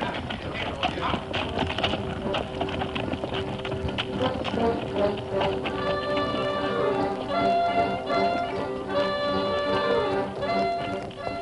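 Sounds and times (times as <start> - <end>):
hoofbeats of a cavalry troop's horses ridden into a mountain pass: 0.0 - 11.3
sustained tones: 4.2 - 11.3.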